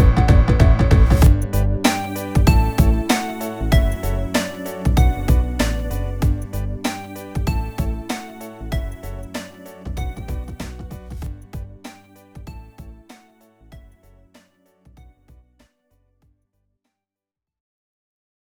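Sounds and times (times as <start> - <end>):
bouncy tween music: 0.0 - 14.2.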